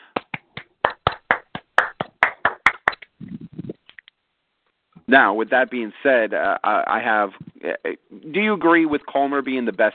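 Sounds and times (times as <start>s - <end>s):
crowd applauding: 0.2s - 3.0s
speech: 5.1s - 9.9s.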